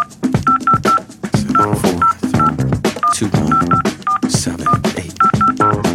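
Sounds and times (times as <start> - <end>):
busy music: 0.0 - 5.9
telephone keypad tones dialing a number: 0.0 - 5.9.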